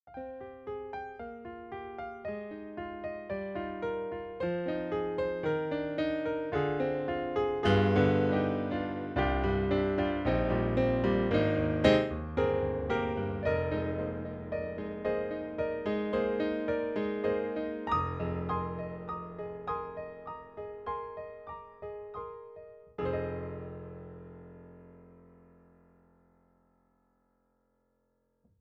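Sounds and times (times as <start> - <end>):
piano: 0.0 - 27.8.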